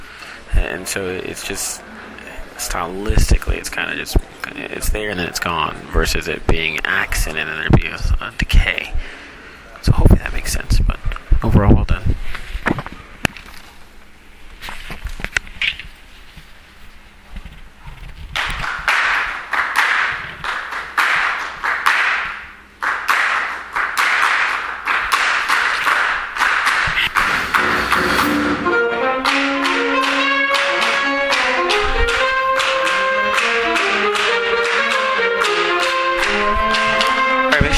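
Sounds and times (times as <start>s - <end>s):
speech: 0.6s - 2.0s, 2.6s - 9.2s, 9.8s - 12.4s
group clapping in rhythm: 18.4s - 37.7s.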